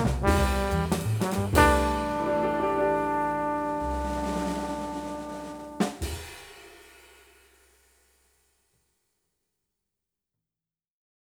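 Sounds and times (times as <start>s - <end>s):
trombone: 0.0s - 6.4s.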